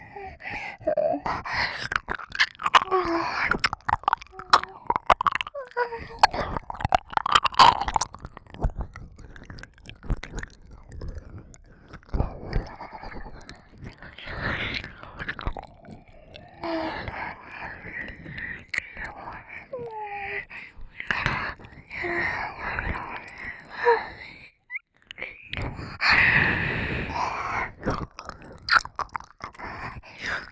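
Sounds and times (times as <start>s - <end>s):
ear licking in both ears: 0.0s - 20.0s, 27.3s - 30.5s
breathing and moaning: 0.0s - 30.5s.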